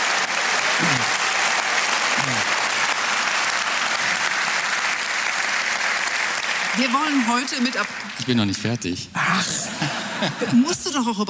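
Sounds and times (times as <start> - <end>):
audience applause for an orchestra in Cologne: 0.0 - 8.8
speech: 6.8 - 11.2
laughter: 9.3 - 11.0.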